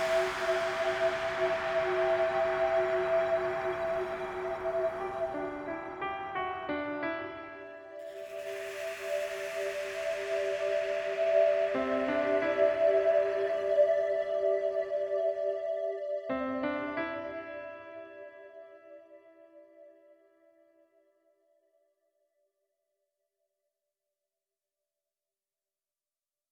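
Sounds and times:
slow piano: 0.0s - 20.7s.

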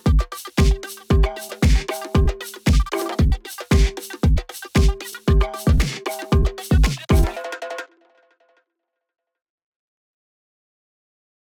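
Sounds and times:
cypher beat: 0.0s - 7.6s.

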